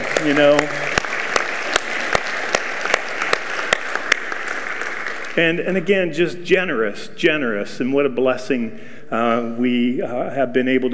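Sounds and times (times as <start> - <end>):
audience clapping: 0.0 - 5.6
speech: 0.2 - 0.8, 5.4 - 10.9.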